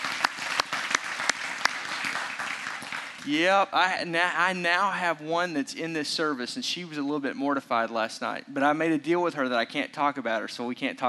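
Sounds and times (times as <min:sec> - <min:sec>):
audience applause welcoming new sixth graders at a service: 0:00.0 - 0:03.6
speech: 0:03.2 - 0:11.0.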